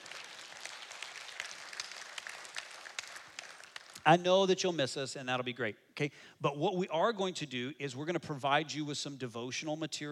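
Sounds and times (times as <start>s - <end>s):
audience clapping: 0.0s - 4.1s
speech: 4.0s - 10.1s.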